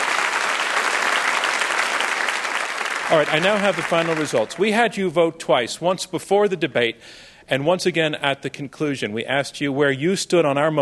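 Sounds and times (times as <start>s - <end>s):
audience applause after a debate between two teams: 0.0s - 4.7s
speech: 3.1s - 10.8s.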